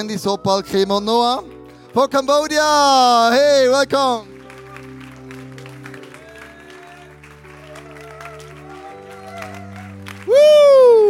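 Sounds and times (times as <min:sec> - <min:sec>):
speech: 0:00.0 - 0:04.3, 0:10.3 - 0:11.0
audience applause: 0:04.0 - 0:11.0.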